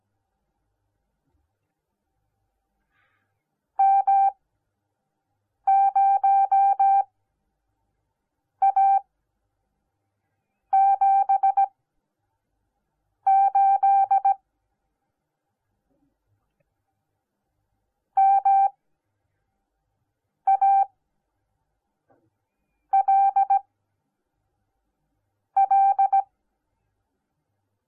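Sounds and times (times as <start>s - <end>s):
morse code beeps: 3.8s - 4.4s, 5.7s - 7.1s, 8.6s - 9.0s, 10.8s - 11.7s, 13.3s - 14.4s, 18.2s - 18.8s, 20.5s - 20.9s, 22.9s - 23.6s, 25.6s - 26.3s.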